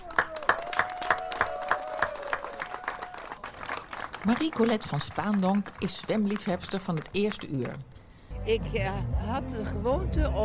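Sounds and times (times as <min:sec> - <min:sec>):
rhythmic applause: 0:00.0 - 0:07.9
speech: 0:04.2 - 0:10.4.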